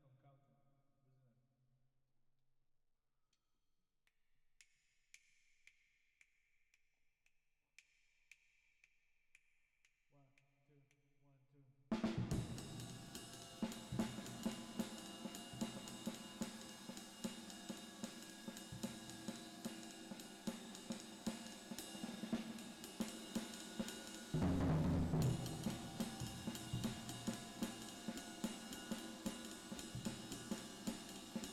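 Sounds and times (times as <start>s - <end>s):
drums with reverb: 12.0s - 31.5s.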